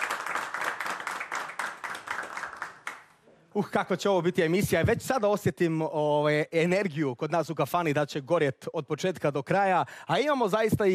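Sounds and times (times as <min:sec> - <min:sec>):
audience applause in a tavern during a live evening music show: 0:00.0 - 0:03.1
speech: 0:03.6 - 0:10.9.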